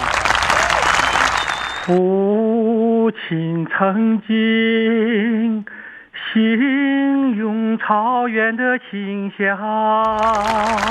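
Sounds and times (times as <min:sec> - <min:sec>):
applause: 0:00.0 - 0:02.0, 0:10.0 - 0:10.8
speech: 0:01.9 - 0:10.8.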